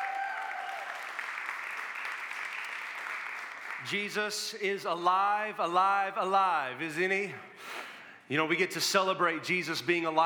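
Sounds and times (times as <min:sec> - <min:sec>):
loud audience applause: 0:00.0 - 0:04.3
speech: 0:03.8 - 0:10.2.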